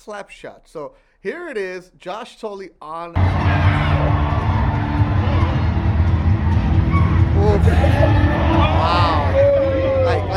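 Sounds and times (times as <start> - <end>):
speech: 0.0 - 4.4
crowd cheering after a hockey slap shot: 3.2 - 10.3.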